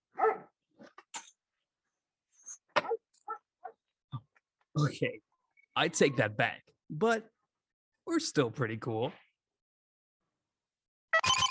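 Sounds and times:
dog barking: 0.1 - 0.6, 2.9 - 3.8
speech: 4.8 - 7.3, 8.1 - 9.2.

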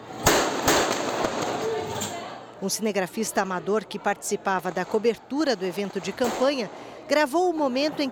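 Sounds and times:
gunshots in recorded footage: 0.2 - 1.6
speech: 2.6 - 8.1.

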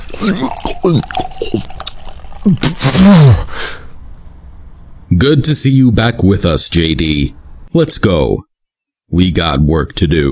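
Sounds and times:
scotch being poured: 0.0 - 3.0
strained voices: 0.0 - 3.8
speech: 0.2 - 1.8, 2.4 - 3.8, 5.2 - 8.5, 9.1 - 10.3.

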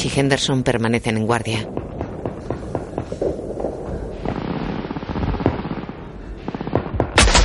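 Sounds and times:
speech: 0.0 - 1.9
gunfire from a World War II film scene in Saving Private Ryan: 1.8 - 7.4.

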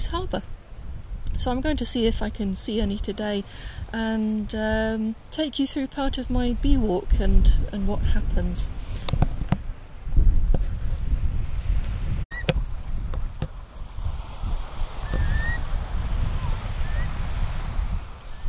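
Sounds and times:
speech: 0.0 - 0.6, 1.4 - 9.2
gusty wind: 0.0 - 18.4
rumbling water: 12.2 - 18.4
curlews calling as they fly over: 15.0 - 15.7.

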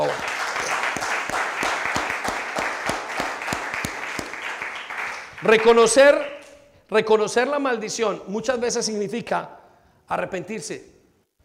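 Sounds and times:
audience applauding: 0.0 - 6.4
speech: 5.4 - 6.3, 6.9 - 10.9.

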